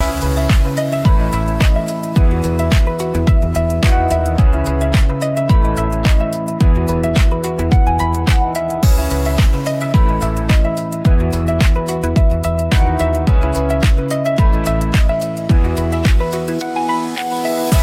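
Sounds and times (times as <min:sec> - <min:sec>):
music loop: 0:00.0 - 0:17.8.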